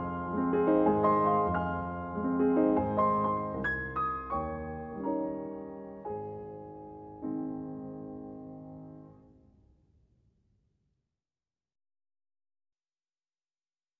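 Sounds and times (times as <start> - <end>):
waltz in A flat major: 0.0 - 9.1.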